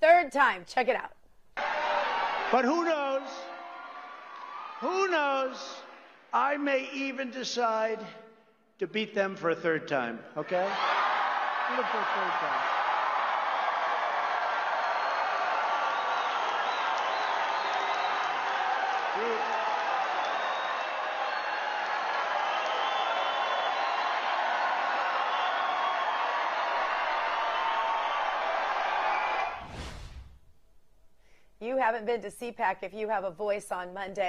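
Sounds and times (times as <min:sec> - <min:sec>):
speech: 0:00.2 - 0:01.7, 0:02.5 - 0:03.5, 0:04.8 - 0:08.2, 0:08.8 - 0:11.0, 0:11.7 - 0:12.7, 0:32.0 - 0:34.2
conference crowd screaming: 0:01.6 - 0:06.1, 0:10.5 - 0:30.0.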